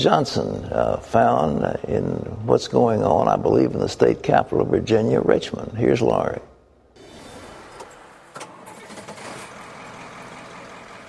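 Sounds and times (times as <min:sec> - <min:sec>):
speech: 0:00.0 - 0:06.5
truck engine of a mobile farmers market driven from Richmond Virginia: 0:07.0 - 0:11.0.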